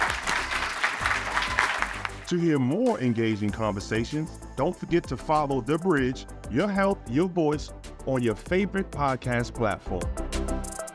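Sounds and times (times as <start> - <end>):
audience applauding: 0.0 - 2.3
speech: 2.3 - 10.3.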